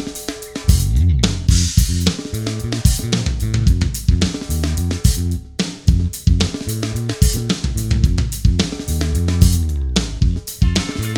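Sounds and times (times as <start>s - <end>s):
pure funk music: 0.3s - 11.1s.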